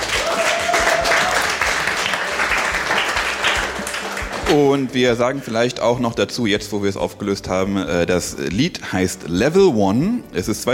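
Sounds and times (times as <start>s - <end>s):
applause: 0.0s - 4.8s
speech: 4.5s - 10.7s.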